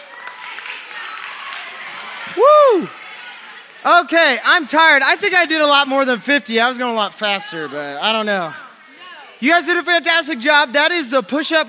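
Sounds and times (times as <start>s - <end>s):
audience applause: 0.0s - 4.1s
speech: 2.3s - 3.0s, 3.8s - 8.6s, 9.4s - 11.6s.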